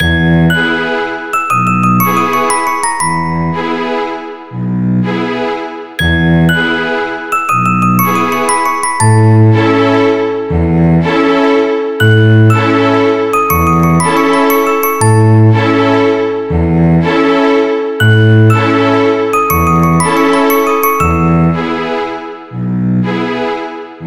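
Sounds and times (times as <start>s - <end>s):
quick waltz music: 0.0s - 23.8s.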